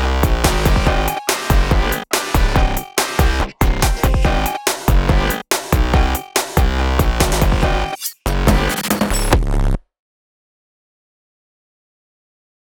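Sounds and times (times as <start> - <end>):
instrumental music: 0.0 - 9.0.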